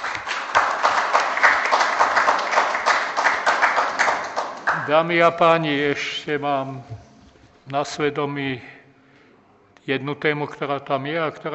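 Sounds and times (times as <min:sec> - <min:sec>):
rhythmic audience clapping at a Slovak gathering: 0:00.0 - 0:06.2
speech: 0:04.9 - 0:07.0, 0:07.7 - 0:08.7, 0:09.8 - 0:11.5.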